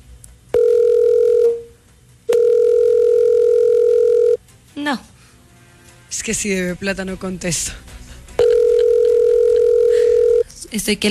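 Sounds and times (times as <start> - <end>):
telephone ringback tone on an unanswered call: 0.6 - 4.4, 8.4 - 10.4
speech: 4.9 - 5.1, 6.2 - 7.9, 10.7 - 11.0.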